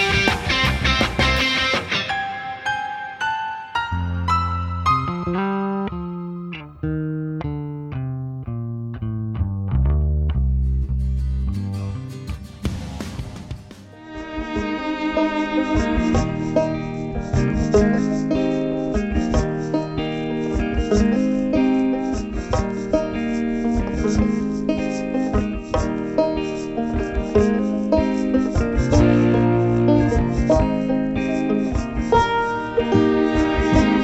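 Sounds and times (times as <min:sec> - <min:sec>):
instrumental music without vocals: 0:00.0 - 0:34.0.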